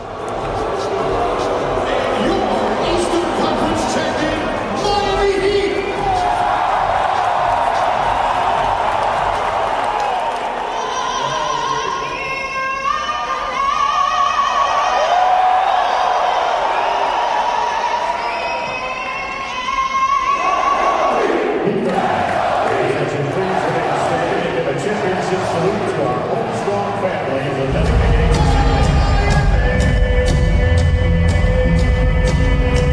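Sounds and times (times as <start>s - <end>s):
arena crowd cheering before a game: 0.0s - 32.9s
shouts and whistles: 14.6s - 21.2s.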